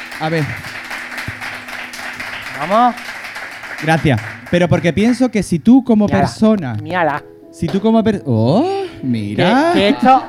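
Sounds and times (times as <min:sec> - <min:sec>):
audience applause: 0:00.0 - 0:05.3
speech: 0:00.2 - 0:00.8, 0:02.6 - 0:03.1, 0:03.8 - 0:10.2.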